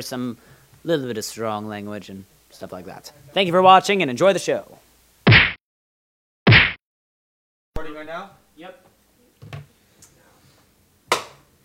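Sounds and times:
speech: 0:00.0 - 0:04.8
single hand clap: 0:11.1 - 0:11.4.

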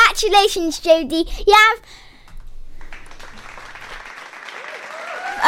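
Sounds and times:
speech: 0:00.2 - 0:02.1
group clapping: 0:02.7 - 0:05.4
high whoops: 0:04.4 - 0:05.4.

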